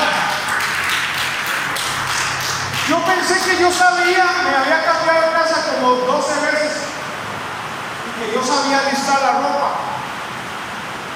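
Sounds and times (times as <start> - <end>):
audience clapping: 0.0 - 3.8
speech: 2.9 - 6.8, 8.2 - 9.9.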